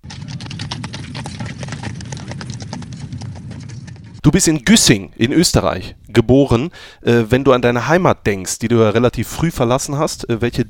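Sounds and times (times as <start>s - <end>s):
galloping horse hooves jingle for a quiz segment: 0.0s - 4.7s
speech: 4.2s - 10.6s.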